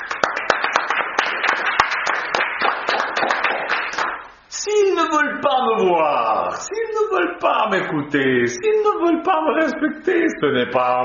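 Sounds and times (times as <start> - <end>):
audience applause: 0.0 - 4.3
speech: 5.1 - 11.0.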